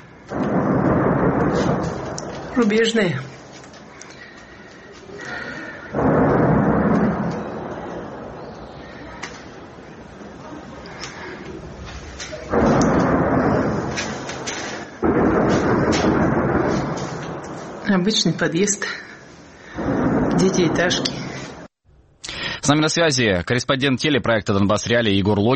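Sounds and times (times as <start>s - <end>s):
distant heavy weapons fire: 0.0s - 9.8s, 11.1s - 21.7s
speech: 2.6s - 3.4s, 18.0s - 19.1s, 20.5s - 21.2s, 22.6s - 25.5s.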